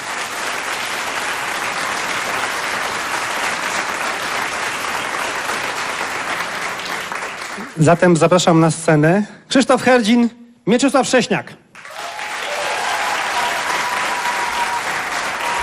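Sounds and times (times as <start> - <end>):
large concert audience applause: 0.0 - 7.9, 11.8 - 15.6
speech: 7.8 - 11.6.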